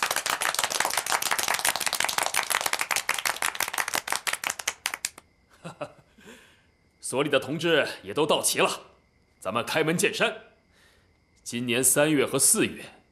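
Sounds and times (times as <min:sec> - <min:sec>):
audience applause: 0:00.0 - 0:05.2
speech: 0:07.1 - 0:10.5, 0:11.5 - 0:13.0.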